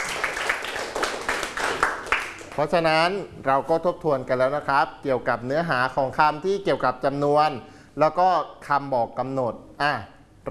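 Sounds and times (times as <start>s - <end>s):
scattered hand claps from students in a classroom: 0.0s - 2.6s
speech: 2.6s - 10.4s.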